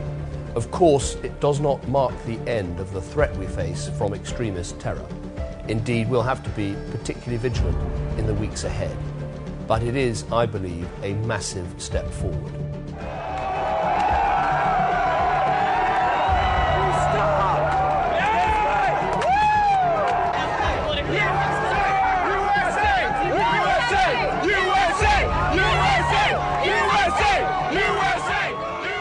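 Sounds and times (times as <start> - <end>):
speech: 0.6 - 9.1, 9.7 - 13.1
crowd cheering in the streets: 13.0 - 29.0.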